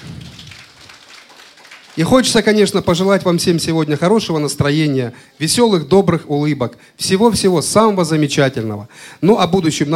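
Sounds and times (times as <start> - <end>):
audience applause: 0.0 - 2.7
speech: 2.0 - 9.9.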